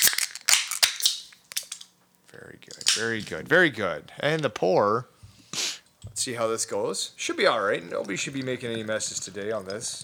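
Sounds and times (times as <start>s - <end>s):
beer can being opened: 0.0s - 1.9s
speech: 2.3s - 5.1s, 6.1s - 10.0s.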